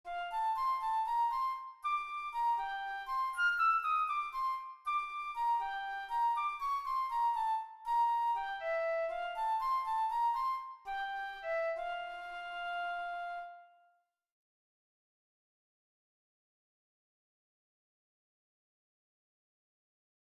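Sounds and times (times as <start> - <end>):
flute: 0.0 - 14.1.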